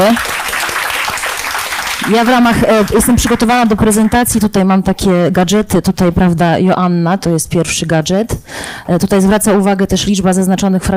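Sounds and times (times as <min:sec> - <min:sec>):
speech: 0:00.0 - 0:00.4, 0:02.0 - 0:10.9
audience applause: 0:00.0 - 0:04.2.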